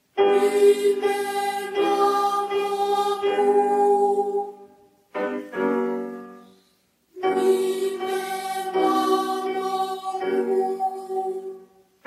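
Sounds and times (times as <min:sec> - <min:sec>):
vocal exercises: 0:00.2 - 0:05.0, 0:07.2 - 0:11.9.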